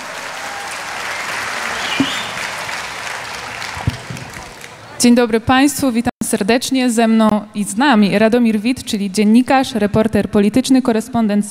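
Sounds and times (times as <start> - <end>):
audience applause: 0.0 - 5.0
speech: 5.0 - 11.4.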